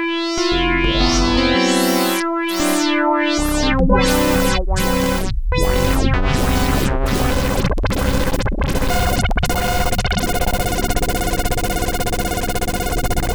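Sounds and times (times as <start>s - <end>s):
Sequential Circuits Prophet-5 sawtooth arpeggiator factory patch: 0.0s - 13.3s.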